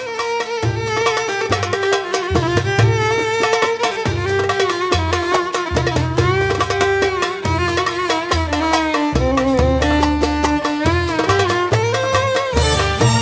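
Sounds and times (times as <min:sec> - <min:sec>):
masmudi kebir rhythm with music: 0:00.0 - 0:13.2.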